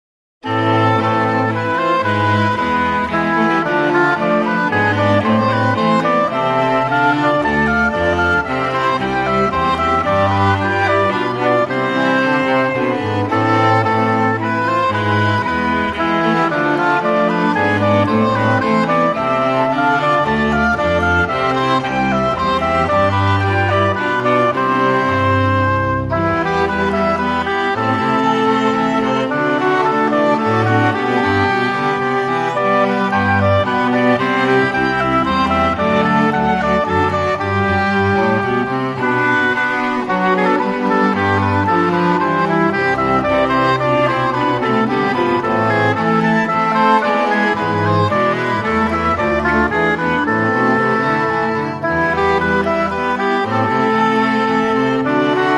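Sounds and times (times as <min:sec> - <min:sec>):
minuet: 0:00.4 - 0:55.5.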